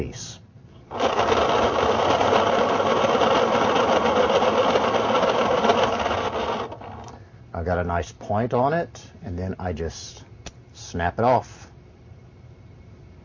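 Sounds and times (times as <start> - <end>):
speech: 0.0 - 1.2, 7.6 - 11.6
pencil sharpener sharpening a pencil: 0.9 - 7.1.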